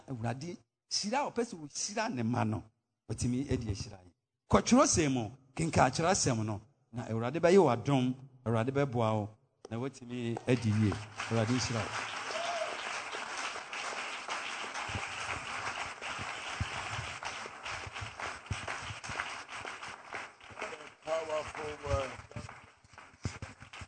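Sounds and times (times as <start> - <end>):
speech: 0.1 - 12.1
audience clapping for a pastor: 10.4 - 23.8.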